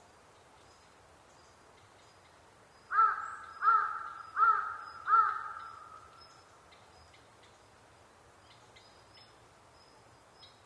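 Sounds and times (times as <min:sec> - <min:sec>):
large-billed crow cawing: 0:02.9 - 0:06.1.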